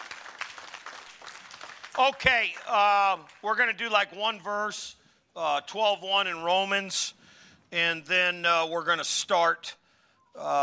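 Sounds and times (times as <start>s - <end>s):
audience applause: 0.0s - 3.4s
speech: 2.0s - 9.8s, 10.4s - 10.6s.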